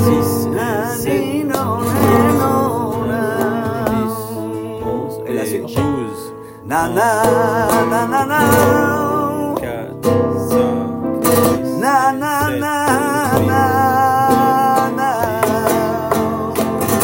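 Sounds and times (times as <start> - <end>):
flamenco solea: 0.0 - 17.0.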